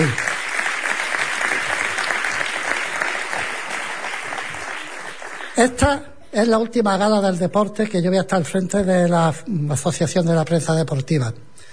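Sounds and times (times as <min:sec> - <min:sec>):
audience applause: 0:00.0 - 0:05.8
speech: 0:05.6 - 0:11.5.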